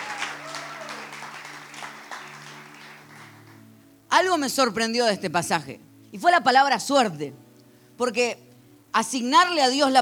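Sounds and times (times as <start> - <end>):
audience applause: 0.0 - 3.6
speech: 4.2 - 7.4, 8.0 - 10.0.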